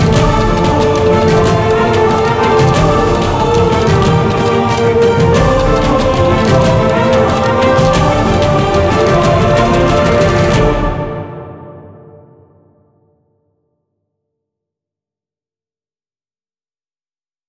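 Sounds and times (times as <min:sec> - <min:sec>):
symphonic music: 0:00.0 - 0:12.4.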